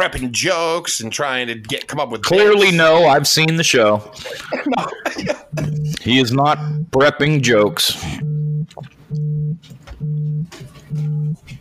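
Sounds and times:
speech: 0.0s - 9.2s
laughter: 4.1s - 6.0s
mobile phone vibrating: 5.4s - 6.9s, 8.1s - 11.4s.

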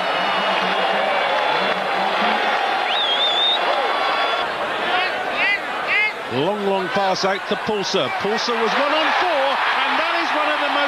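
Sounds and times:
stadium crowd applauding and cheering a try: 0.0s - 5.1s, 6.4s - 10.8s
shrill whistles from stadium crowd: 2.9s - 4.4s
speech: 6.3s - 9.3s.

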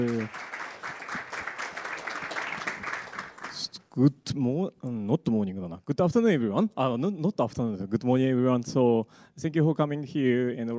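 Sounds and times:
speech: 0.0s - 0.5s, 4.0s - 10.7s
crowd applause for speaker: 0.0s - 3.7s.

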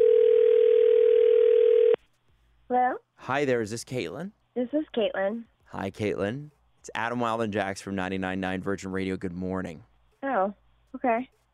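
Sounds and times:
telephone dial tone before a call-in to a radio station: 0.0s - 2.0s
speech: 2.8s - 11.4s.

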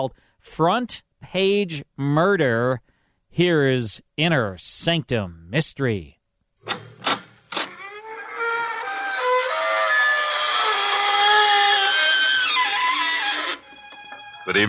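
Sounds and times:
speech: 0.0s - 7.2s, 14.5s - 14.6s
door creaking open: 6.6s - 14.4s
sharp raps: 6.7s - 7.8s.

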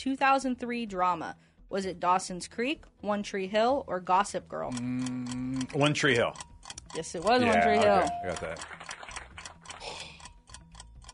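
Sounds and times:
speech: 0.0s - 8.9s
quiz timer ticking: 3.8s - 11.1s.

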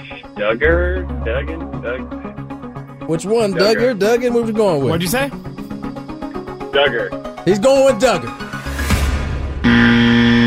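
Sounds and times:
speech: 0.4s - 2.4s, 3.1s - 5.5s, 6.8s - 8.4s
game show buzzer: 9.6s - 10.4s.

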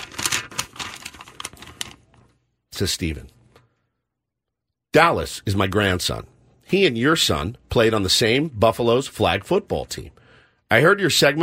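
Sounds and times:
padded envelope with firm contents torn open: 0.0s - 2.2s
speech: 2.8s - 3.4s, 5.0s - 11.4s.

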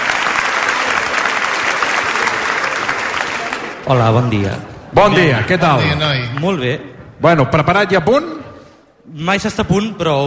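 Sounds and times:
audience applause: 0.0s - 4.0s
speech: 3.9s - 8.4s, 9.0s - 10.2s.

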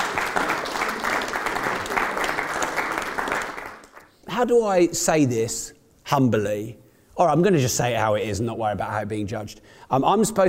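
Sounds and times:
audience applause: 0.0s - 4.1s
speech: 4.4s - 10.4s.

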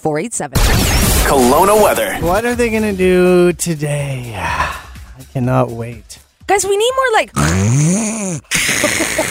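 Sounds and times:
speech: 0.0s - 9.2s
person imitating a snore: 7.4s - 9.2s.

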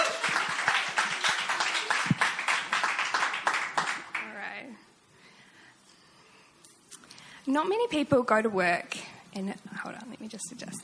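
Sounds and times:
crowd applauding: 0.0s - 4.5s
speech: 7.5s - 10.8s.

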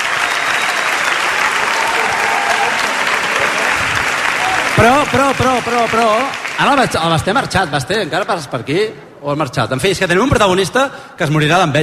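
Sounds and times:
audience applause: 0.0s - 7.4s
speech: 4.8s - 11.8s.

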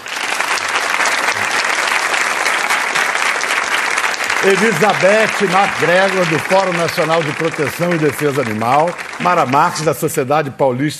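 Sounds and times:
studio audience applause: 0.0s - 10.3s
speech: 4.4s - 10.9s.

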